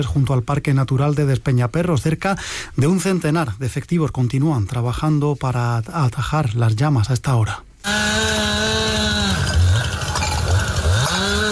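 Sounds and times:
speech: 0.0 - 9.2
brush-clearing power tools cutting vegetation at night: 7.8 - 11.4.

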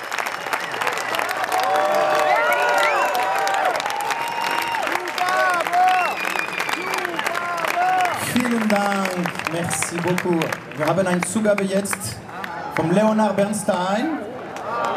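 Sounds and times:
long applause at end of concert: 0.0 - 13.3
speech: 9.2 - 12.2, 12.8 - 14.2.

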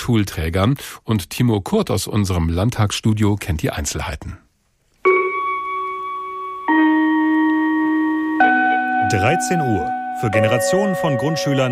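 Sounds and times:
speech: 0.0 - 4.4, 9.1 - 11.7
school gong ringing, signalling end of lessons: 5.1 - 11.7.

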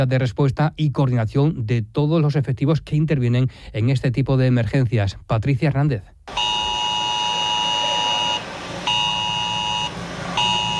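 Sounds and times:
speech: 0.0 - 6.5
emergency alert alarm for a forest fire drill in Alcuéscar: 6.3 - 10.7.

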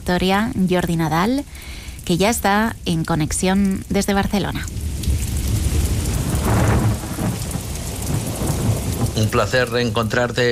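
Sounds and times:
steady rain: 0.0 - 10.5
thunder rumbling: 0.0 - 10.5
speech: 0.1 - 4.8, 9.2 - 10.5.

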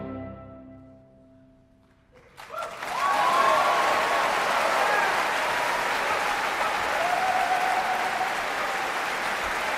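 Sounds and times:
large audience clapping for an orchestra and cello soloist after a concerto: 1.8 - 9.7
whoops from the audience: 2.4 - 9.0.

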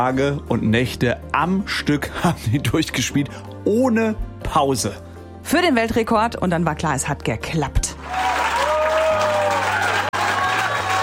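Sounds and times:
speech: 0.0 - 8.2
crowd cheering and applause after world record: 8.0 - 11.0.

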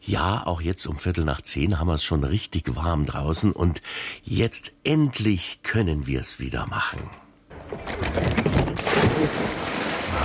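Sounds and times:
speech: 0.0 - 9.4
water churning and sloshing: 8.7 - 10.2.

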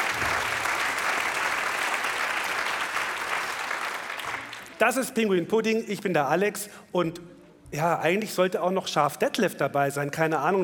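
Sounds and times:
audience applause: 0.0 - 4.8
speech: 4.8 - 10.6.

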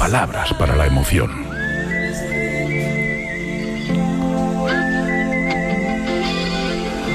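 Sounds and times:
speech: 0.1 - 1.5
simple whistled melody from a song: 1.4 - 7.1.

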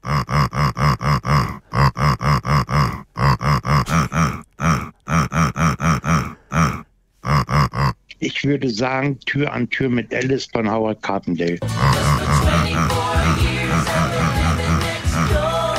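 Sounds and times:
pig grunting in a rhythmic song-like pattern: 0.0 - 8.1, 11.6 - 15.7
speech: 8.2 - 12.1.

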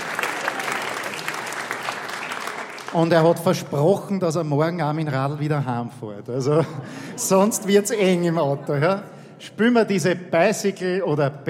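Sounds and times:
audience applause for a musician at a polka performance: 0.0 - 3.4
speech: 2.9 - 11.4
laughter: 6.4 - 9.2.

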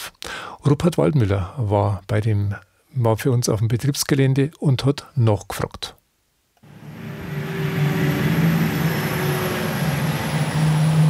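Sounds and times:
speech: 0.7 - 6.0
electric truck tires rolling on asphalt: 6.6 - 11.0
large red electric truck whirring: 6.6 - 11.0.

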